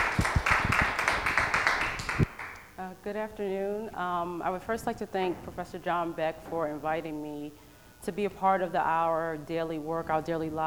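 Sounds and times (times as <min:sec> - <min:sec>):
small lecture audience clapping: 0:00.0 - 0:02.7
speech: 0:02.9 - 0:10.6.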